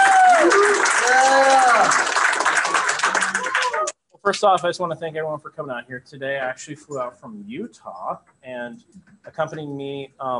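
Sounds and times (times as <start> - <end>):
high whistle or cheer sliding down: 0.0 - 1.7
crowd applause: 0.0 - 3.9
speech: 4.3 - 10.3.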